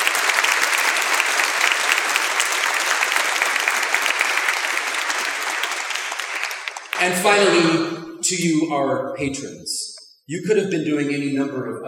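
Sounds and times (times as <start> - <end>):
audience applause: 0.0 - 7.7
speech: 7.0 - 11.8.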